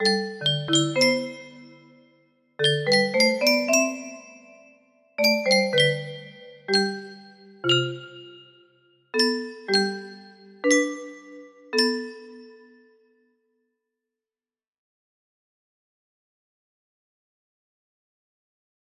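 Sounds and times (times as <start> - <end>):
music box melody: 0.0 - 13.0.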